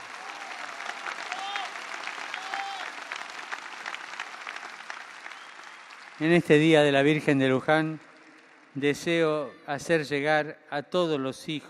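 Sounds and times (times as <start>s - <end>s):
crowd applause: 0.0s - 9.2s
speech: 6.2s - 8.1s, 8.8s - 11.6s.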